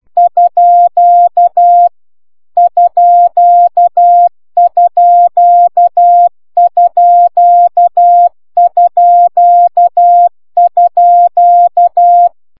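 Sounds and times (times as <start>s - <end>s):
CW Morse code beeps: 0.2s - 1.9s, 2.6s - 12.3s.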